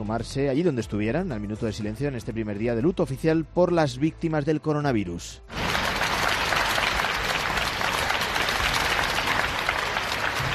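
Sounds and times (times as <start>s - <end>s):
speech: 0.0s - 5.6s
applause after a minute of silence at the Mercado Central de Valencia: 5.5s - 10.5s.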